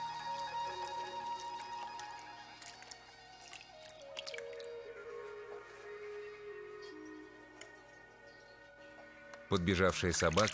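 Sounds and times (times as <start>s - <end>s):
milk poured from a carton into a bowl on a dark floor: 0.7s - 4.7s, 10.2s - 10.5s
speech: 9.5s - 10.5s.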